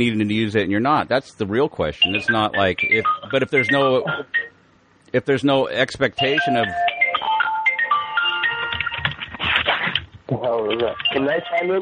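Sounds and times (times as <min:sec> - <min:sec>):
speech: 0:00.0 - 0:04.5, 0:05.1 - 0:06.8, 0:10.3 - 0:11.8
phone ringing: 0:02.0 - 0:04.6, 0:06.2 - 0:09.6, 0:10.8 - 0:11.8.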